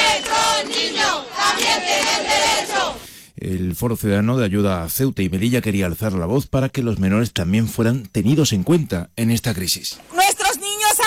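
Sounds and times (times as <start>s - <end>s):
protest crowd chanting: 0.0s - 3.1s
speech: 3.5s - 10.6s.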